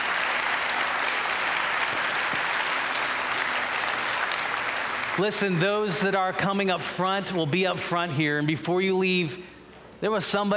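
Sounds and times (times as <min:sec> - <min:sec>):
audience clapping: 0:00.0 - 0:06.2
speech: 0:05.2 - 0:10.5.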